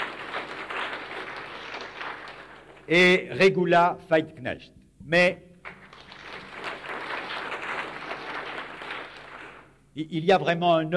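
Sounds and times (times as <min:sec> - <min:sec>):
audience applause: 0:00.0 - 0:02.9, 0:05.7 - 0:09.7
speech: 0:02.9 - 0:05.5, 0:10.0 - 0:10.9.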